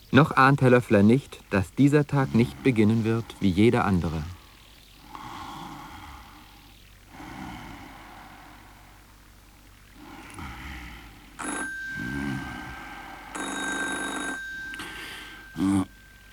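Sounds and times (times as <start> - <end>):
speech: 0.1 - 4.4
telephone ringing: 11.4 - 16.3.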